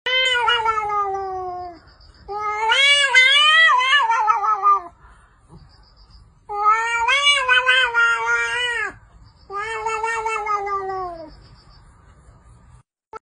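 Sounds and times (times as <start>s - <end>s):
cat caterwauling: 0.1s - 5.0s, 6.5s - 11.4s.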